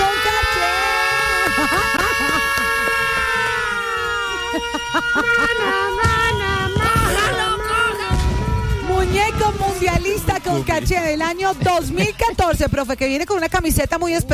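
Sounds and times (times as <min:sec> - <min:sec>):
laughter: 0:01.0 - 0:08.3, 0:10.0 - 0:12.6
electronic siren sound effect: 0:02.2 - 0:11.0
speech: 0:10.5 - 0:14.3.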